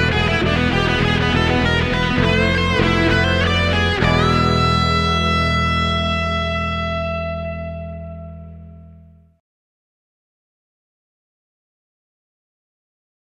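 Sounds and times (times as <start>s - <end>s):
eighth-note play-along music without drums: 0.0s - 9.0s.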